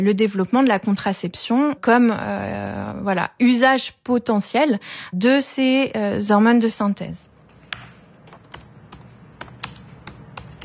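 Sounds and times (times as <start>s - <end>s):
speech: 0.0s - 7.3s
computer keyboard typing: 7.7s - 10.6s.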